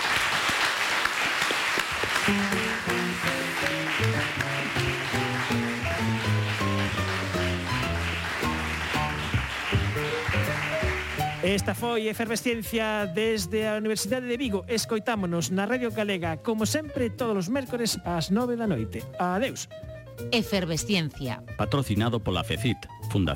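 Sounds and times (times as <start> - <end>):
crowd applause: 0.0 - 11.7
bright melodic tune with a bass line: 2.2 - 23.3
speech: 2.3 - 2.6, 11.4 - 23.3.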